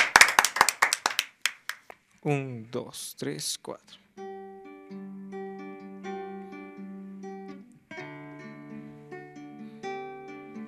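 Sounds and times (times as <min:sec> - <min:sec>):
few people clapping: 0:00.0 - 0:02.0
speech: 0:02.2 - 0:04.0.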